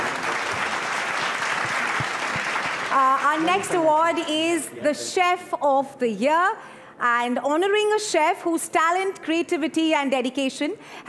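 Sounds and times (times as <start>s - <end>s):
crowd applauding: 0.0s - 3.8s
speech: 3.0s - 11.0s.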